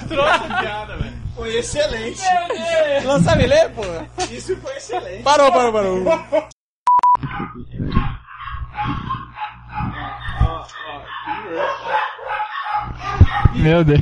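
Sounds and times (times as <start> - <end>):
laughter: 0.0 - 6.6, 11.3 - 12.1
speech: 0.1 - 6.5, 13.6 - 13.9
dogs barking: 7.2 - 13.8.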